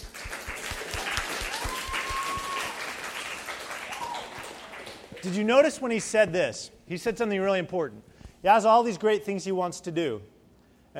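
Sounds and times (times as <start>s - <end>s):
audience applause: 0.0s - 5.4s
speech: 5.2s - 10.3s.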